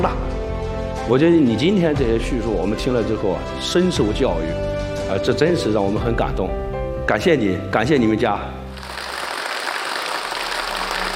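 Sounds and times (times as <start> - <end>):
speech: 0.0 - 0.3, 1.1 - 8.6
audience applause: 8.8 - 11.1.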